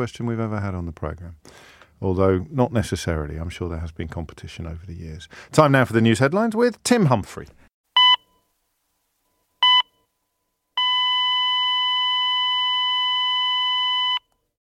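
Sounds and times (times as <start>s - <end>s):
speech: 0.0s - 7.6s
heart monitor beeps: 8.0s - 8.4s, 9.6s - 10.0s, 10.8s - 14.3s.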